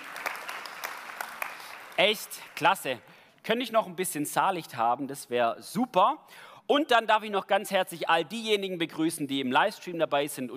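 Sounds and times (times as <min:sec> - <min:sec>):
audience applause: 0:00.0 - 0:02.9
speech: 0:02.0 - 0:10.5.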